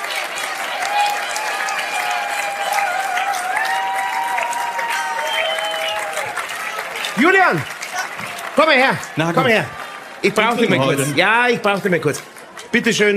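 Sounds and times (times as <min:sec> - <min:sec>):
faint whistles and cheers: 0:00.0 - 0:09.9
audience clapping: 0:00.0 - 0:13.1
speech: 0:07.2 - 0:07.8, 0:08.6 - 0:13.1.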